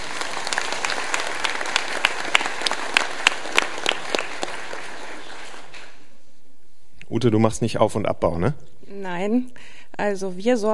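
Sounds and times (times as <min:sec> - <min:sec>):
applause from audience: 0:00.0 - 0:06.1
speech: 0:07.1 - 0:10.7.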